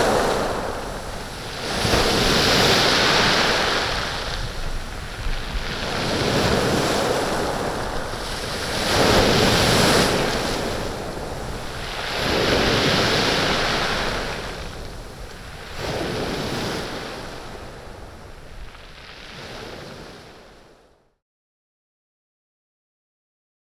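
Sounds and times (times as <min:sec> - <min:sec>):
heavy sea waves washing on a stony beach: 0:00.0 - 0:20.8.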